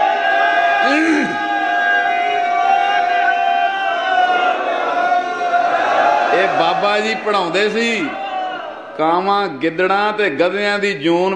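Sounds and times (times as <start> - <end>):
crowd shouting the Sikh jakara war cry: 0.0 - 9.0
speech: 6.8 - 8.2, 9.0 - 11.3.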